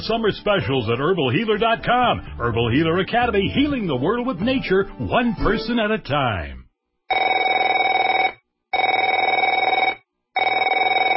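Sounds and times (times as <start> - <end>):
speech: 0.0 - 7.2
telephone ringing: 7.1 - 11.1.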